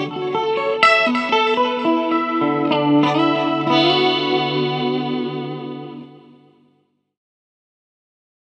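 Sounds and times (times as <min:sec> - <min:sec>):
Harley Benton JamBox clean tone with delay and chorus: 0:00.0 - 0:06.6.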